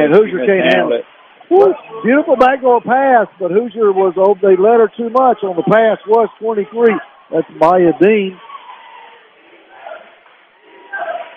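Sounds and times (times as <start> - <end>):
speech: 0.0 - 8.5
crowd shouting: 0.2 - 10.2.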